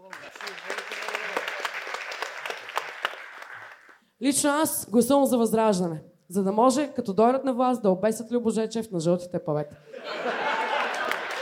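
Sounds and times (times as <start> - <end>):
audience applause at a comedy roast: 0.0 - 4.0, 10.4 - 11.4
speech: 4.2 - 10.4
laughter: 9.9 - 11.4.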